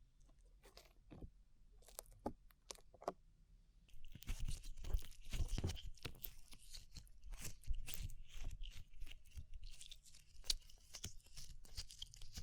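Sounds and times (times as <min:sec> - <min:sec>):
slime being worked for ASMR: 0:04.0 - 0:12.4.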